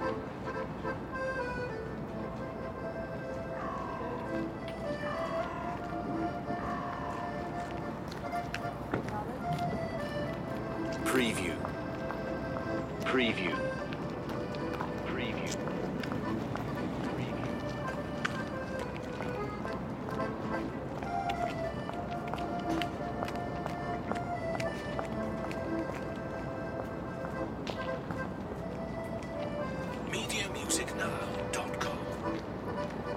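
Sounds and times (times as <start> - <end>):
accordion in a city square: 0.0 - 33.1
early spring birds: 3.5 - 4.5.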